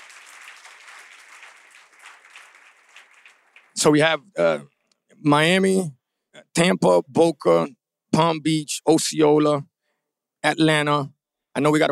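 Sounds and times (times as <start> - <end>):
audience applause: 0.0 - 4.2
speech: 3.8 - 6.0, 6.6 - 9.7, 10.4 - 11.8.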